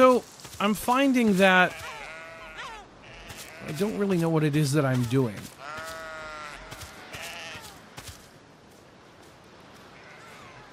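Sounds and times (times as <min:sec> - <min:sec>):
speech: 0:00.0 - 0:01.8, 0:03.6 - 0:05.6
outdoor noise: 0:00.0 - 0:10.7
sheep bleating: 0:01.3 - 0:04.1, 0:05.5 - 0:07.8, 0:09.9 - 0:10.7.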